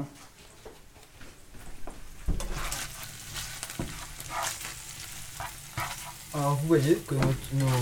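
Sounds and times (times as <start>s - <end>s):
lardons sizzling and crackling in a hot pan: 1.8s - 7.7s
speech: 6.4s - 7.7s.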